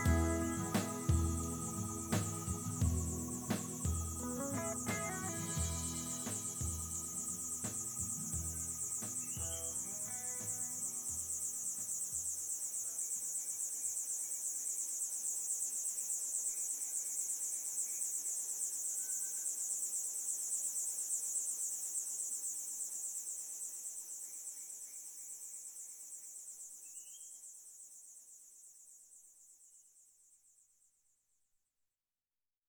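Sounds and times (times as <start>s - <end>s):
low thumps: 0.0s - 9.7s
cicada buzzing: 0.0s - 12.8s.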